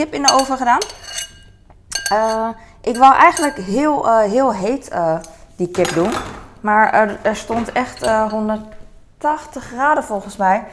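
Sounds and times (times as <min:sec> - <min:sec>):
speech: 0:00.0 - 0:01.0, 0:02.1 - 0:10.7
dishes and cutlery being loaded into a dishwasher: 0:00.2 - 0:03.8, 0:07.4 - 0:08.7.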